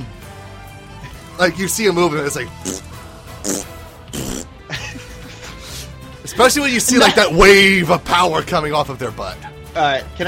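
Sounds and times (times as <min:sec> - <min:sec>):
speech: 0:01.4 - 0:03.0, 0:06.4 - 0:10.2
fart noise made with the mouth: 0:02.5 - 0:04.7
laughter: 0:04.6 - 0:07.6.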